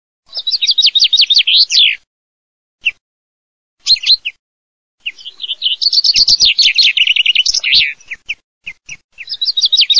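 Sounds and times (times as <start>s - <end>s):
Common chaffinch song: 0.2s - 2.1s, 2.8s - 3.0s, 3.8s - 4.4s, 5.0s - 9.9s.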